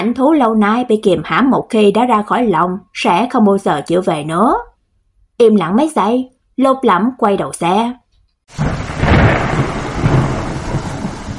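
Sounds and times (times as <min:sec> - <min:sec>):
speech: 0:00.0 - 0:04.7, 0:05.4 - 0:09.6
deep rolling thunder in a sudden early spring storm: 0:08.5 - 0:11.3
heavy rain pouring by a greenhouse: 0:08.5 - 0:11.3.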